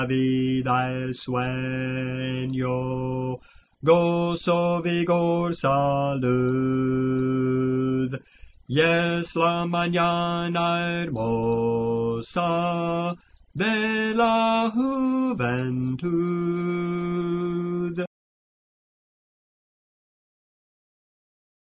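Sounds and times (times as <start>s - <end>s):
bass voice singing spiritual songs: 0.0s - 18.1s.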